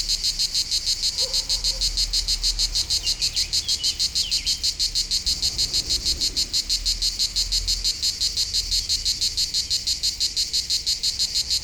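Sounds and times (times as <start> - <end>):
cicadas buzzing on a hot summer day in France: 0.0 - 11.6.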